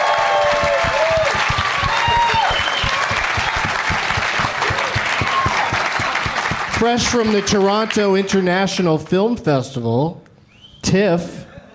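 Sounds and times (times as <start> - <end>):
studio audience applause for a comedian guest on a talk show: 0.0 - 8.8
speech: 6.8 - 10.2, 10.9 - 11.4.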